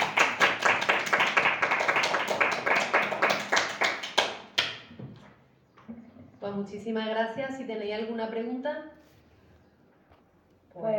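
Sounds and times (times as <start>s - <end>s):
audience applause: 0.0s - 4.4s
speech: 6.6s - 9.0s, 10.8s - 10.9s.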